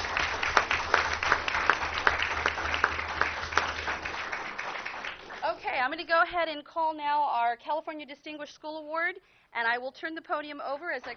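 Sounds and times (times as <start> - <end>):
audience applause for students: 0.0 - 5.6
speech: 5.8 - 11.1.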